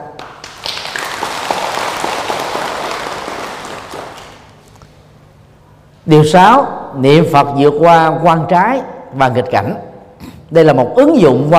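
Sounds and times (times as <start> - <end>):
audience applause: 0.2 - 4.6
speech: 6.1 - 9.9, 10.5 - 11.5.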